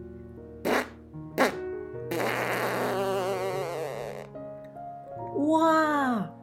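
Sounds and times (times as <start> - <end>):
soft steady musical backing: 0.0 - 6.4
fart underwater making bubbles: 0.6 - 4.3.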